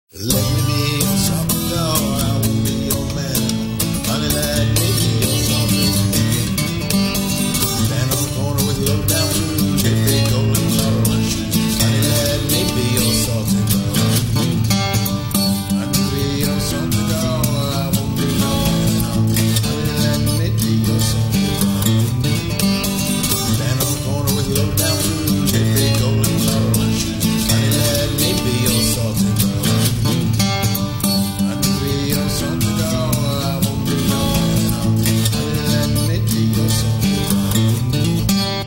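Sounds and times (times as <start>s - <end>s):
blues music: 0.1s - 38.6s.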